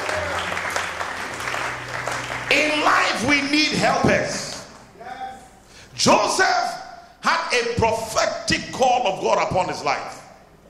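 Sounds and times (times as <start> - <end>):
audience clapping: 0.0 - 4.8
speech: 6.0 - 6.6, 7.8 - 10.2.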